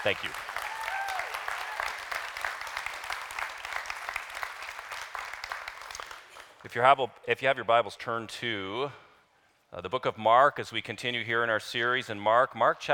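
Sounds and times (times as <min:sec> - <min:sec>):
speech: 0:00.0 - 0:00.5, 0:06.6 - 0:09.0, 0:09.7 - 0:12.9
audience applause: 0:00.0 - 0:06.5.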